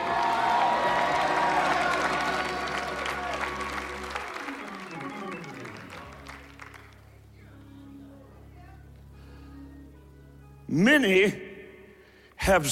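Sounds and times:
audience shouting: 0.0s - 6.0s
audience applauding: 0.0s - 7.2s
sustained low musical tones: 0.0s - 12.6s
speech: 10.7s - 11.4s, 12.5s - 12.6s.

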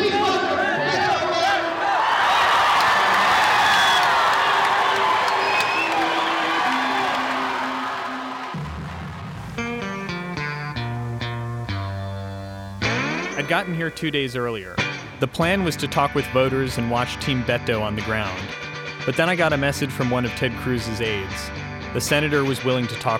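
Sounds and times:
large crowd cheering in main hall: 0.0s - 9.6s
music with bright, steady tones: 5.3s - 23.1s
speech: 13.5s - 23.1s.

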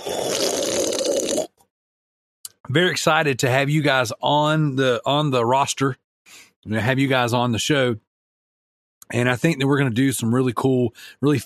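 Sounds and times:
slurping a drink: 0.0s - 1.6s
speech: 2.7s - 8.0s, 9.1s - 11.4s.

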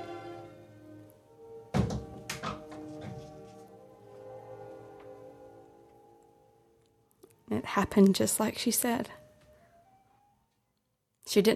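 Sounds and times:
door thudding shut: 1.7s - 3.2s
speech: 7.5s - 9.2s, 11.3s - 11.5s.

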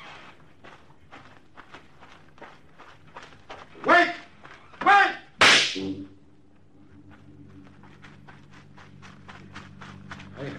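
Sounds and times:
gunshot fired to get someone's attention: 5.4s - 5.9s.

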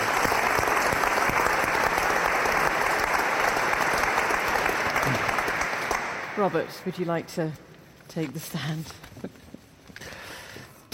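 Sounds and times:
audience applause: 0.0s - 7.1s
speech: 6.4s - 9.3s.

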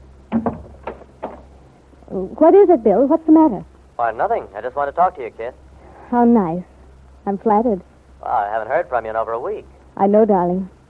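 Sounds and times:
wooden door pushed shut: 0.3s - 1.5s
speech: 2.2s - 10.8s.

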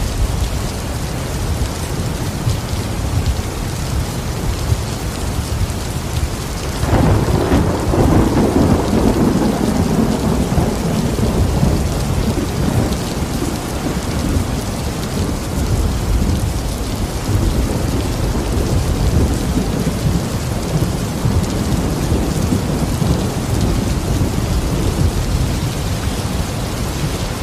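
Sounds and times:
heavy rain on the roof and wooden porch: 0.0s - 27.4s
low rolling thunder: 5.8s - 27.4s.

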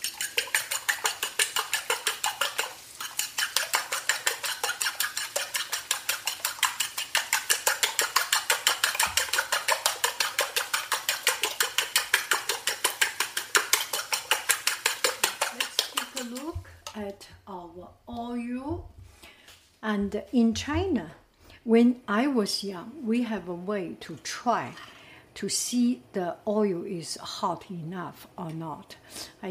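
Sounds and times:
utensil beating a mixture with salt, pepper and cumin seed in a bowl: 0.0s - 17.4s
speech: 19.9s - 29.5s.

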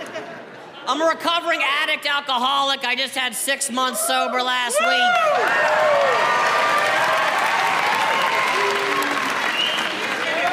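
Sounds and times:
speech: 0.9s - 6.5s
audience applause: 5.0s - 10.5s
whistles: 9.4s - 10.2s.

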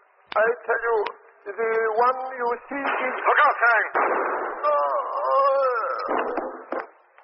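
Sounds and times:
speech: 0.4s - 4.9s, 6.1s - 6.6s
gunshot: 2.8s - 4.8s, 6.0s - 6.9s
wavering voice-like cry: 4.6s - 6.7s.

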